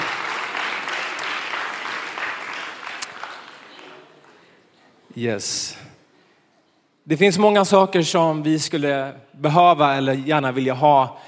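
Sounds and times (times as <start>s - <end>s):
audience applause: 0.0s - 4.6s
speech: 5.2s - 5.9s, 7.1s - 11.2s.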